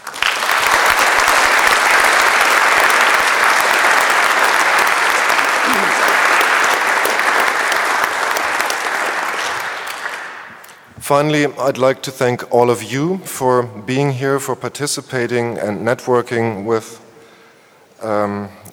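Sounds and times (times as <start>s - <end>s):
audience applause: 0.0s - 10.8s
speech: 11.1s - 17.0s, 18.0s - 18.7s.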